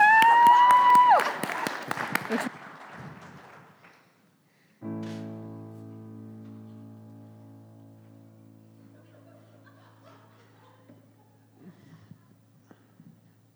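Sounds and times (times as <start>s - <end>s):
audience clapping: 0.0s - 4.5s
laughter: 1.4s - 3.6s, 8.9s - 13.1s.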